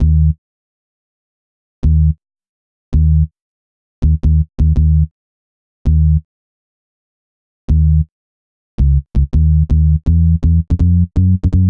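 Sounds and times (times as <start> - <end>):
synth bass: 0.0 - 0.4, 1.8 - 2.2, 3.0 - 3.3, 4.0 - 5.1, 5.9 - 6.2, 7.7 - 8.1, 8.8 - 11.6.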